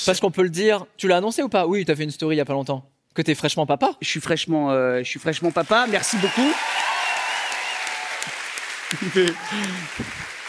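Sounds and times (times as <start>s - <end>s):
speech: 0.0s - 6.8s, 8.9s - 10.4s
audience applause: 5.4s - 10.4s.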